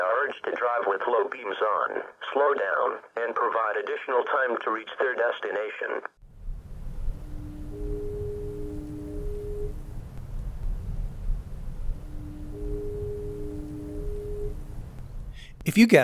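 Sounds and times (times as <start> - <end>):
speech: 0.3 - 6.2, 15.6 - 16.0
foghorn at the U.S. Route 50 Chesapeake Bay Bridge in Maryland: 6.2 - 16.0.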